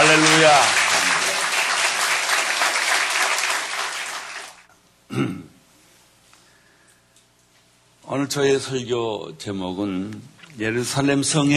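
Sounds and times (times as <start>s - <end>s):
audience applause: 0.0s - 4.7s
throat clearing: 5.1s - 5.6s
speech: 5.2s - 5.5s, 8.1s - 11.5s.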